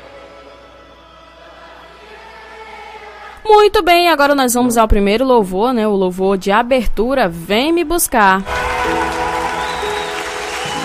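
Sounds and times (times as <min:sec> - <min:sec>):
speech: 0:03.4 - 0:09.0
audience applause: 0:08.3 - 0:10.8.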